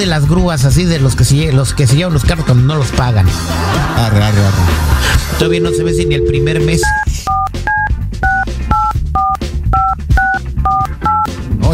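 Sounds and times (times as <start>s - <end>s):
speech: 0.0s - 7.4s
laughter: 3.4s - 5.5s
touch-tone beeps dialing a telephone number: 5.4s - 11.3s.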